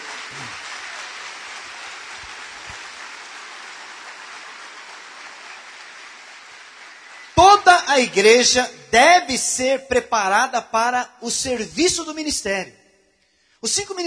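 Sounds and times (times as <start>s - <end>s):
audience applause: 0.0s - 8.2s
speech: 8.0s - 12.8s, 13.6s - 14.0s.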